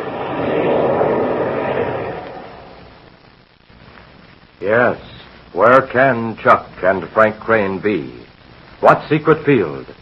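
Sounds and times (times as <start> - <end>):
airplane engines throttling down to land: 0.0 - 3.2
speech: 4.7 - 8.2, 8.8 - 9.9.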